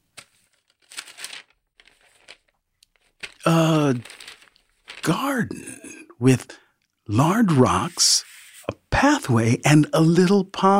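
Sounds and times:
paper crumpling and crinkling: 0:00.0 - 0:05.4
speech: 0:03.5 - 0:04.2, 0:05.0 - 0:08.3, 0:09.0 - 0:10.7.

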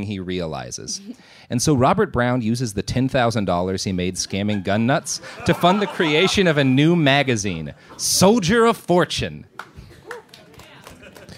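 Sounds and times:
speech: 0:00.0 - 0:09.6
laughter: 0:04.3 - 0:08.0, 0:10.0 - 0:11.3
applause: 0:09.5 - 0:11.3.

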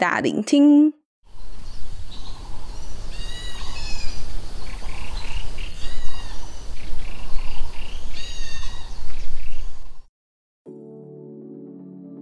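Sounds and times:
speech: 0:00.0 - 0:01.0
birds chirping: 0:01.3 - 0:10.0.

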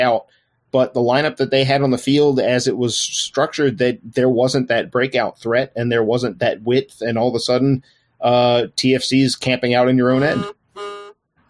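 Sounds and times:
speech: 0:00.0 - 0:10.6
mobile phone vibrating against a microphone: 0:10.3 - 0:11.2.

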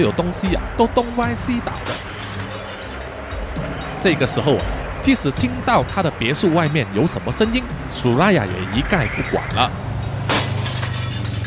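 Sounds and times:
speech: 0:00.0 - 0:02.1, 0:04.0 - 0:09.9
steady low rumble: 0:00.0 - 0:11.4
glass shattering: 0:01.8 - 0:03.4, 0:10.2 - 0:11.4.

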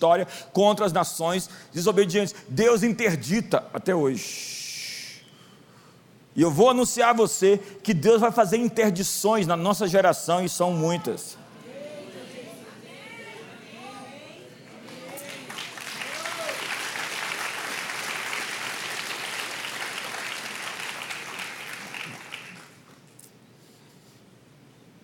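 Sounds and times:
speech: 0:00.0 - 0:04.6, 0:06.4 - 0:11.4
audience applause: 0:14.7 - 0:23.0.

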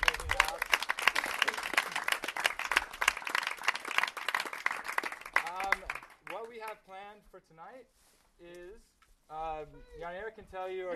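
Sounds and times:
applause: 0:00.0 - 0:06.8
speech: 0:06.7 - 0:10.9.

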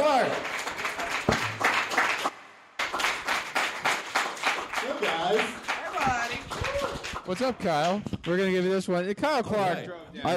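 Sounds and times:
crowd applause for comedian: 0:00.0 - 0:07.6
speech: 0:07.3 - 0:10.3.

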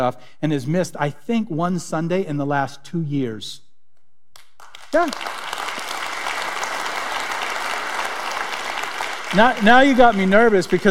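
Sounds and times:
speech: 0:00.0 - 0:03.6, 0:04.9 - 0:05.4, 0:09.3 - 0:10.8
audience clapping: 0:04.4 - 0:10.8.

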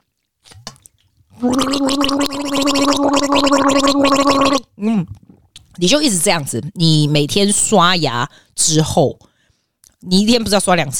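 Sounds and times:
gargling water in the throat: 0:01.2 - 0:05.8
speech: 0:01.4 - 0:04.0, 0:05.8 - 0:09.3, 0:10.0 - 0:10.9.

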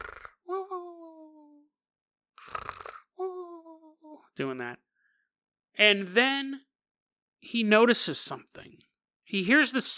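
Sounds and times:
voice imitating squirrels snoring: 0:00.0 - 0:00.5, 0:02.4 - 0:03.2
speech: 0:04.4 - 0:04.9, 0:05.8 - 0:06.7, 0:07.4 - 0:09.9.

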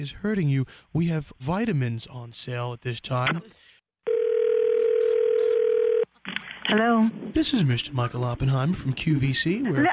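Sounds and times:
speech: 0:00.0 - 0:03.7, 0:06.7 - 0:09.9
telephone dial tone after hang-up: 0:04.1 - 0:06.1.

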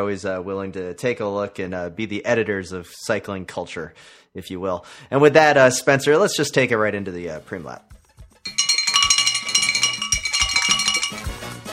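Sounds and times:
speech: 0:00.0 - 0:07.9
bell ringing: 0:08.5 - 0:11.6.

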